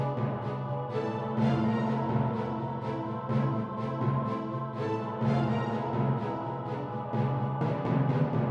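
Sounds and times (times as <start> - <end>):
dramatic adventure music for a fight situation: 0.0 - 8.5.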